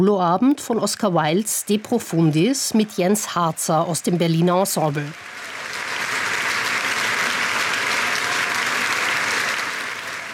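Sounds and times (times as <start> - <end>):
speech: 0.0 - 5.5
audience applause: 2.2 - 10.3
audience cheering: 4.1 - 10.3.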